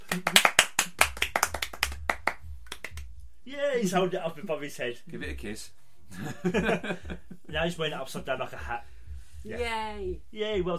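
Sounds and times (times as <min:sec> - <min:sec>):
small group of people clapping: 0:00.0 - 0:03.2
speech: 0:03.5 - 0:10.7.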